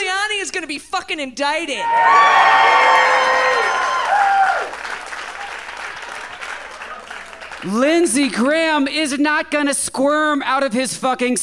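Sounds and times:
speech: 0.6 - 3.9, 7.6 - 11.4
sliding whistle-like tones and cheers: 1.8 - 7.6
crowd applause: 1.9 - 7.8.

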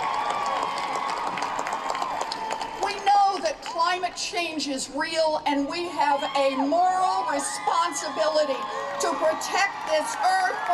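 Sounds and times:
large rally crowd cheering and applauding: 0.0 - 3.4, 6.1 - 10.7
speech: 4.2 - 10.7.

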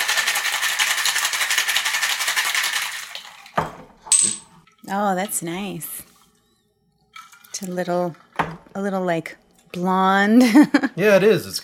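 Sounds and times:
cocktail shaker full of ice rattling: 0.0 - 3.5
speech: 4.9 - 6.0, 7.6 - 11.6.

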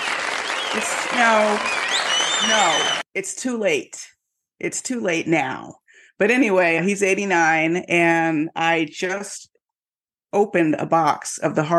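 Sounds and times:
applause sound effect: 0.0 - 3.1
speech: 0.8 - 1.8, 2.4 - 9.5, 10.3 - 11.7.

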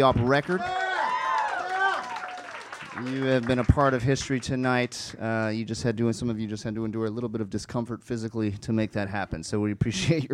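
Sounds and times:
speech: 0.0 - 0.8, 3.0 - 10.3
audience round of applause: 0.2 - 4.5.

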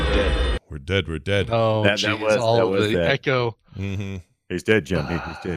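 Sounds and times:
speech: 0.2 - 5.5
man yelling in a film: 1.5 - 3.4.

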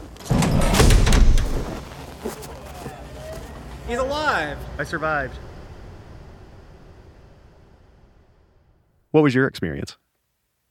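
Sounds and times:
heavy chamber door opening with air rush: 0.2 - 1.9
speech: 3.9 - 5.5, 9.2 - 10.0.

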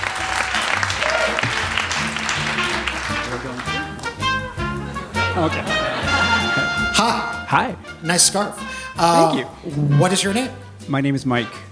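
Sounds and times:
audience applause: 0.0 - 6.7
laughter: 4.6 - 7.3
speech: 5.4 - 5.8, 7.0 - 11.7.

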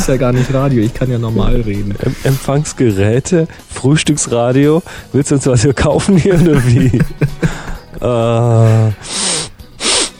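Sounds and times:
speech: 0.0 - 9.3
laughter: 6.2 - 8.9
person sniffling from hay fever: 7.3 - 7.9, 8.5 - 10.1.

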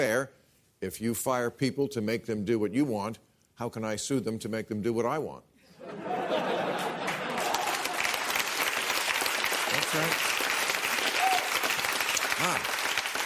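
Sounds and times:
speech: 0.0 - 6.5, 9.9 - 10.3
laughter: 5.8 - 8.4
audience applause: 6.5 - 13.2.

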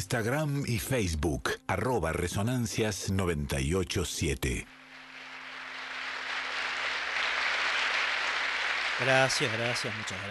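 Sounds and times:
speech: 0.0 - 4.8, 9.0 - 10.2
audience applause: 4.7 - 10.2.

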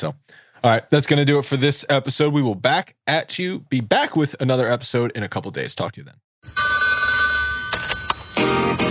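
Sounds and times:
speech: 0.0 - 6.9
telephone ringing in electronic trills: 6.5 - 8.8.

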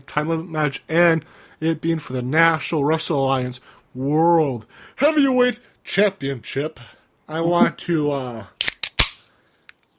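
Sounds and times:
speech: 0.1 - 8.6
soda can being cracked open: 8.6 - 9.9.

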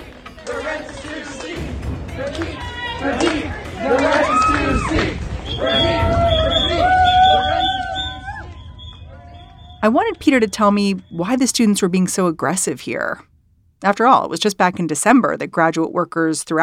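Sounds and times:
students clapping: 0.0 - 9.5
students chanting outside the event: 0.0 - 10.0
speech: 0.5 - 4.1, 9.8 - 16.6
students blowing whistles: 4.2 - 11.6.

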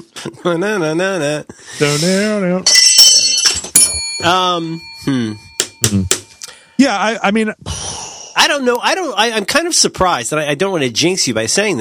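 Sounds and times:
speech: 0.0 - 2.8, 4.2 - 6.2, 6.8 - 7.8, 8.4 - 11.8
small bell ringing: 2.7 - 6.4.

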